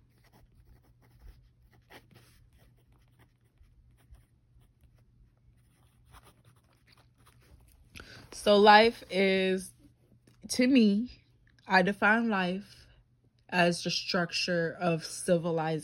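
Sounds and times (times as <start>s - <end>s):
pen scratching while writing: 0.0s - 7.6s
speech: 8.4s - 9.7s, 10.5s - 12.7s, 13.5s - 15.8s.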